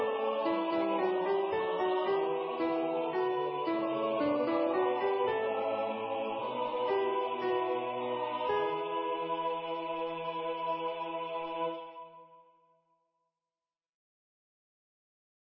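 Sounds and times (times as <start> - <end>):
alto singing mass: 0.0 - 12.1.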